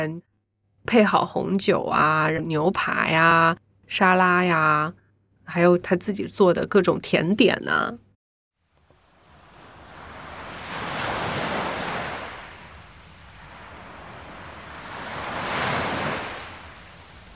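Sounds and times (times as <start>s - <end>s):
speech: 0.0s - 8.0s
ocean waves crashing: 9.0s - 17.3s.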